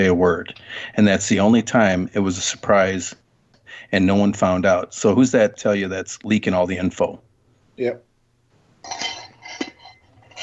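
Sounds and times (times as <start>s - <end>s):
speech: 0.0s - 7.2s, 7.8s - 8.1s, 8.8s - 9.1s
hiss: 0.0s - 10.4s
stainless steel water cup clinking: 8.8s - 10.4s.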